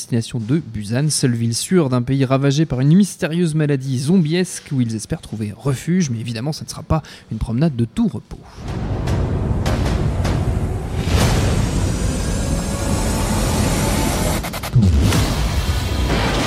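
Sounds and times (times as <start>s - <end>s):
speech: 0.0s - 9.2s
explosions in a movie trailer: 8.6s - 16.4s
rumbling roar in a movie trailer: 8.6s - 16.4s.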